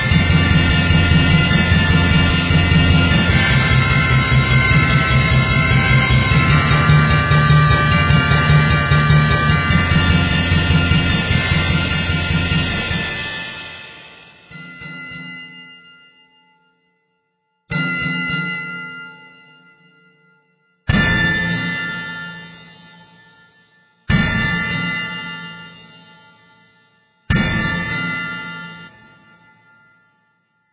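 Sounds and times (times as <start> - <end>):
manic percussion: 0.0 - 15.7, 20.9 - 23.3, 24.1 - 26.5, 27.3 - 29.4.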